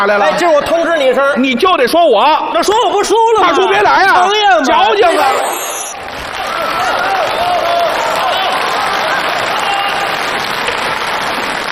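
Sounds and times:
speech: 0.0s - 5.6s
audience applause: 6.0s - 11.7s.

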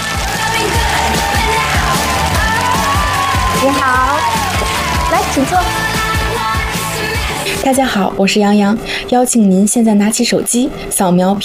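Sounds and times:
audience applause and cheering: 0.0s - 7.6s
speech: 5.4s - 6.0s, 7.6s - 11.4s.

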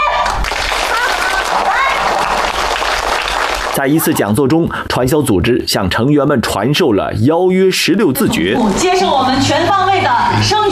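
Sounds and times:
warm applause: 0.2s - 4.4s
speech: 3.8s - 10.7s.

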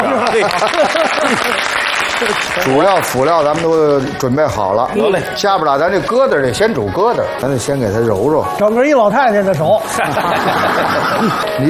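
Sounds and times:
laughter: 0.0s - 3.4s, 9.6s - 11.6s
studio audience applause on a Chinese cooking show: 0.0s - 4.3s
speech: 0.4s - 11.6s.

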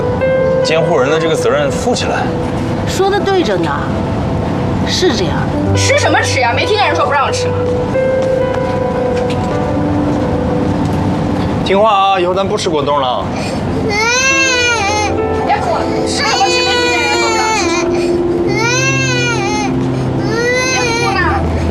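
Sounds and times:
adults talking: 0.6s - 21.7s
small child crying: 13.8s - 21.7s.

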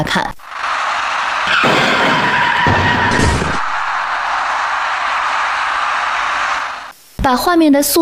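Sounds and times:
speech: 0.0s - 0.4s, 1.5s - 2.2s, 7.3s - 8.0s
white minibus crashing into electric bicycle rider: 0.4s - 6.9s
steady hiss: 5.2s - 8.0s.

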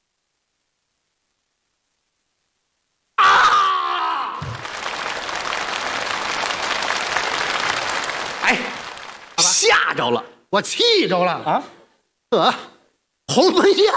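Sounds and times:
audience cheering: 3.2s - 9.9s
audience applause: 4.3s - 9.8s
speech: 9.9s - 12.7s, 13.3s - 13.9s.

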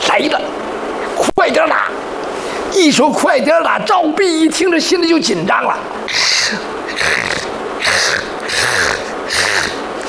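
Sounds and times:
speech: 0.2s - 0.6s, 1.5s - 2.1s, 2.7s - 7.2s
voice imitating snoring: 6.1s - 10.0s.

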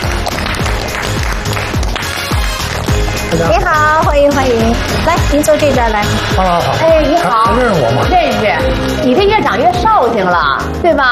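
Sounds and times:
studio audience applause: 0.0s - 8.9s
speech: 3.3s - 11.1s.

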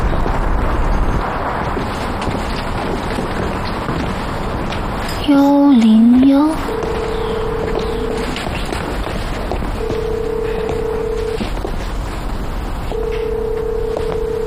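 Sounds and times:
rumbling noise: 0.0s - 14.4s
speech: 5.3s - 6.8s
telephone line tone on a call that fails to get through: 6.2s - 8.5s, 9.8s - 11.7s, 12.9s - 14.4s.

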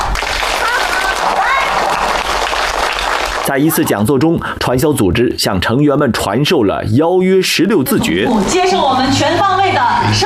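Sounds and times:
audience applause: 0.0s - 4.1s
speech: 3.5s - 10.2s.

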